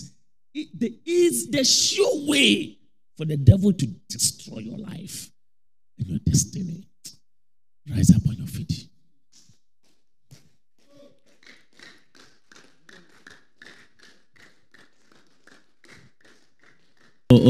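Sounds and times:
speech: 0.6 - 5.3, 6.0 - 7.2, 7.9 - 8.9
people clapping: 9.8 - 17.4.

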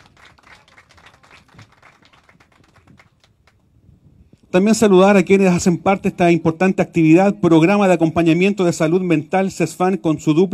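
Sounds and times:
audience applause: 0.0 - 3.6
speech: 4.5 - 10.5.

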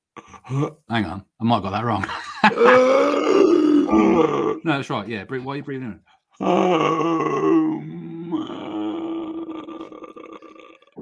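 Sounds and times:
speech: 0.5 - 8.4
laughter: 2.0 - 3.1
person imitating a zombie groan: 2.5 - 4.7, 6.4 - 11.0.

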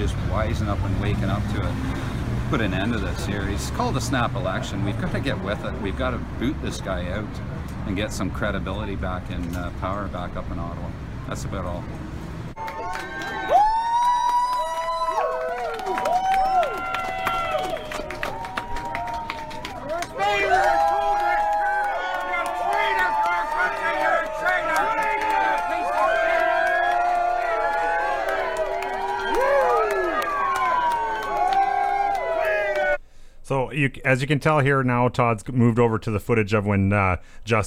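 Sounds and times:
speech: 0.0 - 12.0, 33.8 - 37.6
large crowd cheering and shouting: 12.6 - 33.0.

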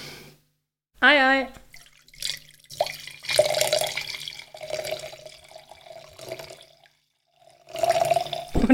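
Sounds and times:
speech: 1.0 - 1.6
drink being poured into a glass: 1.7 - 8.6.

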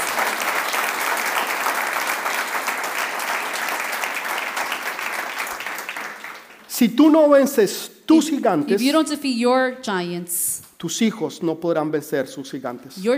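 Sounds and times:
audience applause: 0.0 - 6.8
speech: 6.8 - 13.1.

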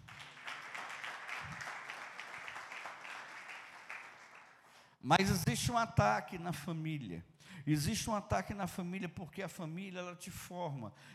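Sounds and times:
audience applause: 0.0 - 4.7
speech: 5.0 - 11.1.

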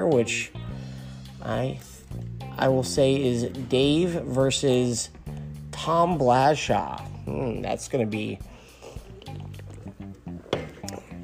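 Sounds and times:
speech: 0.1 - 0.6, 1.4 - 1.9, 2.6 - 5.2, 5.8 - 8.5
person swigging Rockstar energy drink: 8.8 - 11.2.

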